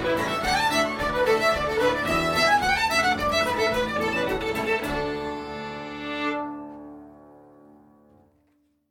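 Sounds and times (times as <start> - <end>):
jig tune: 0.0 - 6.9.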